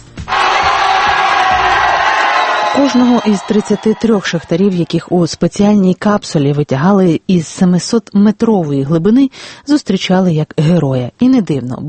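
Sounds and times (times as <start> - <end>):
relatives cheering and shouting as trapped miners are brought up: 0.2 - 5.2
speech: 2.8 - 11.8.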